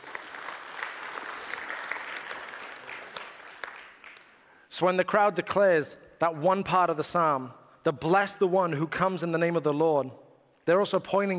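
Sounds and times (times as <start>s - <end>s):
audience applause: 0.0s - 4.4s
speech: 4.8s - 11.3s.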